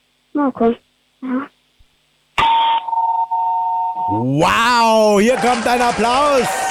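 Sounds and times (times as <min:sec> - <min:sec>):
speech: 0:00.3 - 0:01.6, 0:04.1 - 0:06.6
doorbell ringing, played over phone: 0:02.4 - 0:04.2.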